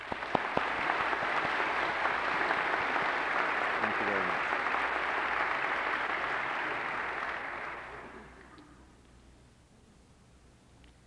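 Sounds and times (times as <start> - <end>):
audience applause welcoming visiting professors at a morning ceremony: 0.0 - 8.5.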